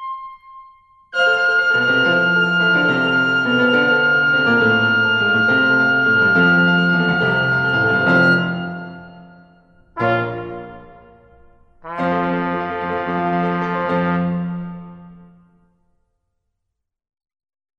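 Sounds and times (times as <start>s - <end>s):
musical cadenza: 1.2s - 15.4s.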